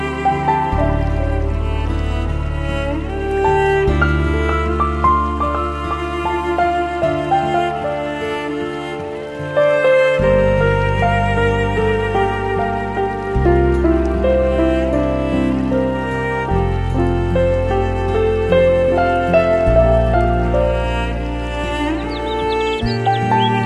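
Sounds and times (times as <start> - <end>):
nature sounds: 0.0 - 23.6.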